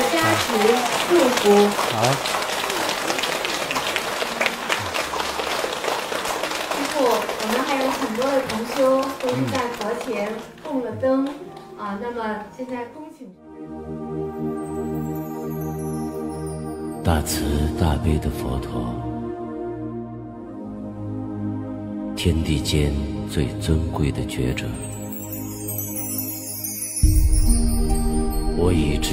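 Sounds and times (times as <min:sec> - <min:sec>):
warm applause: 0:00.0 - 0:11.6
steady sustained tonal music: 0:00.0 - 0:29.1
speech: 0:00.4 - 0:02.4, 0:08.0 - 0:13.4, 0:17.1 - 0:19.1, 0:22.2 - 0:24.9, 0:28.6 - 0:29.1.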